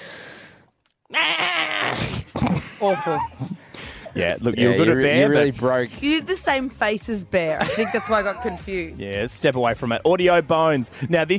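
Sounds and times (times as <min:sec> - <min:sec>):
person imitating a goat with a quavering nasal bleat: 0:01.1 - 0:03.3
fading breathy sound: 0:01.8 - 0:04.2
speech: 0:02.8 - 0:03.5, 0:04.2 - 0:11.3
laughter: 0:07.6 - 0:08.7.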